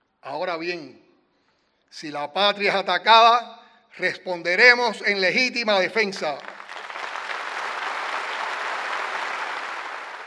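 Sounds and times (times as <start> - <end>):
speech: 0.2 - 1.0, 1.9 - 6.5
large crowd applauding: 6.2 - 10.2.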